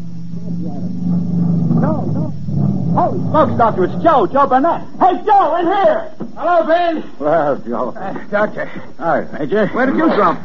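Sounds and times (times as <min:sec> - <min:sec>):
motorcycle engine rumbling: 0:00.0 - 0:04.6
indistinct voices murmuring: 0:00.2 - 0:05.1
speech: 0:03.0 - 0:10.4.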